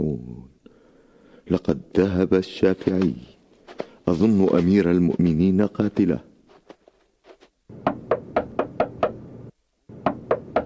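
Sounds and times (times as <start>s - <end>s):
speech: 1.5s - 3.4s, 4.0s - 6.3s
knuckles knocking on a door: 7.8s - 9.2s, 10.0s - 10.6s.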